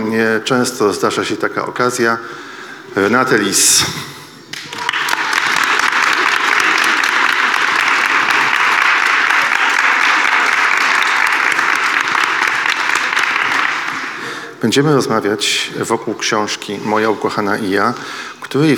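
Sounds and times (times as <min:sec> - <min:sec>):
speech: 0:00.1 - 0:04.8, 0:14.6 - 0:18.7
audience applause standing ovation: 0:04.5 - 0:14.6.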